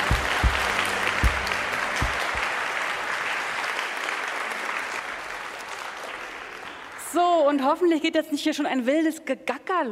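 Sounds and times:
audience applause: 0.0 - 7.1
speech: 7.5 - 9.9.

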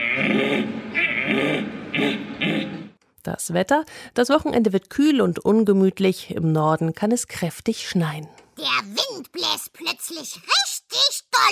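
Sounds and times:
human voice imitating a red deer stag's rutting roar: 0.0 - 2.9
speech: 3.4 - 11.5.

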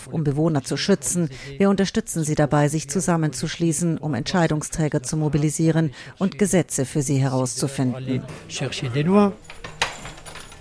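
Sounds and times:
speech: 0.0 - 9.8
keys jangling: 9.4 - 10.5.

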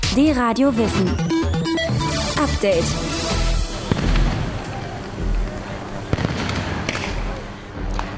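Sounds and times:
speech: 0.1 - 1.3, 2.4 - 3.1
crowd noise and indistinct voices: 2.3 - 8.1
tear gas launchers firing at protest: 3.7 - 8.1.

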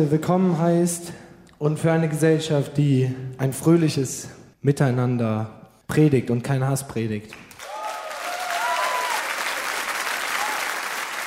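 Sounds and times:
speech: 0.0 - 7.4
audience applause: 7.5 - 11.2.

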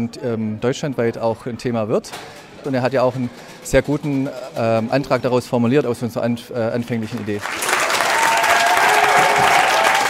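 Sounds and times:
speech: 0.0 - 7.8
spectators cheering and applauding after a council vote: 7.4 - 10.0.

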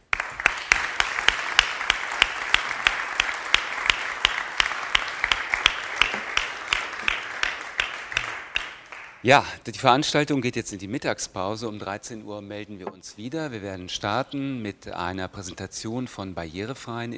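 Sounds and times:
audience applause: 0.0 - 9.2
speech: 9.2 - 17.1.

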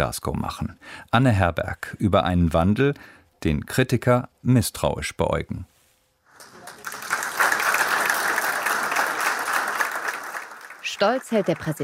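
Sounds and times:
speech: 0.0 - 5.7, 11.0 - 11.8
group applause: 6.3 - 11.8.

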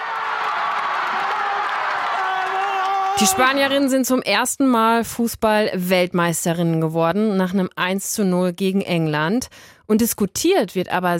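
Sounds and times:
crowd cheering in Madrid: 0.0 - 4.0
speech: 3.2 - 11.1.

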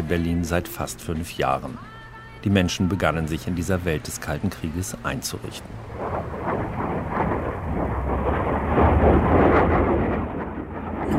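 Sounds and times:
speech: 0.1 - 7.0
Soviet jet fighters thundering over West Berlin: 5.5 - 11.1.

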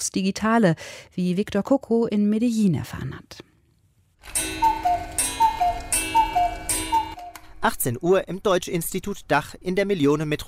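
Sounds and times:
speech: 0.0 - 3.5, 7.6 - 10.4
cuckoo clock ticking: 4.3 - 7.5.

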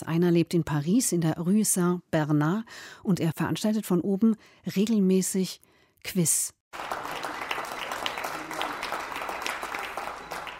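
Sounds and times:
speech: 0.0 - 7.1
applause for nursing staff in hospitals: 6.7 - 10.5.

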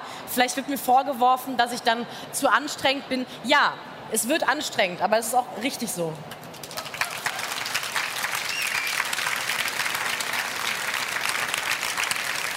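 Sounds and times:
speech: 0.4 - 6.4
audience clapping: 6.3 - 12.5.

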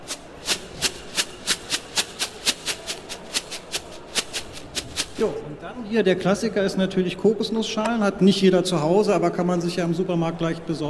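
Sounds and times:
rice shaken in a shoebox mimicking a steam locomotive: 0.0 - 5.4
speech: 5.2 - 10.8.

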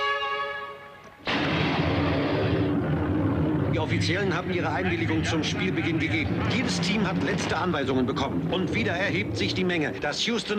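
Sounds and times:
test ball fired from launcher with cannon-like boom: 1.2 - 9.6
speech: 3.8 - 10.5.

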